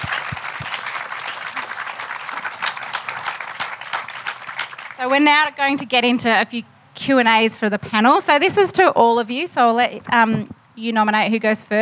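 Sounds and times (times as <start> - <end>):
audience applause welcoming a panel at a sustainable housing talk: 0.0 - 5.5
speech: 5.0 - 11.7.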